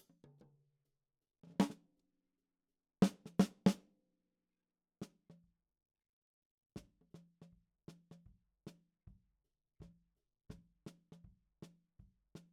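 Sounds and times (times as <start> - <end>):
snare drum top in ragtime style: 3.0 - 3.8.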